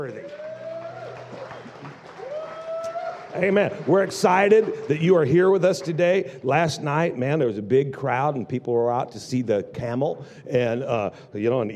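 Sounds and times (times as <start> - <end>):
speech: 0.0 - 0.4, 3.4 - 11.7
audience applause: 0.0 - 6.7.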